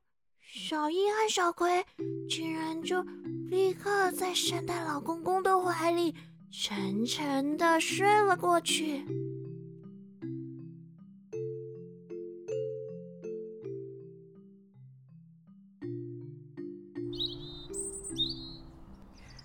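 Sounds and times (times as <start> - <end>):
speech: 0.7 - 9.3
birds chirping in the morning: 17.1 - 19.4.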